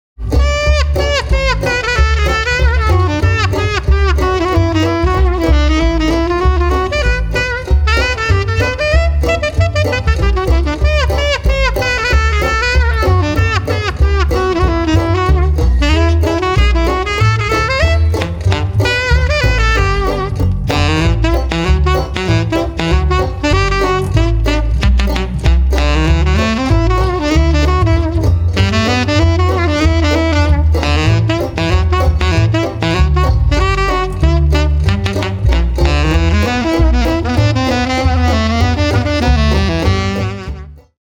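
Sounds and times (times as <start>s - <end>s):
saxophone: 0.2s - 40.9s.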